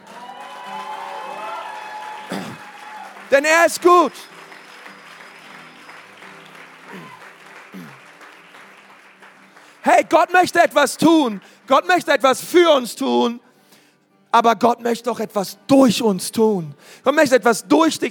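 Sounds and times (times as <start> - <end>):
audience applauding: 0.0 - 11.9
man speaking loudly: 3.3 - 4.3, 9.8 - 13.5, 14.4 - 18.0
speech: 3.3 - 4.3, 9.9 - 13.4, 14.3 - 18.0.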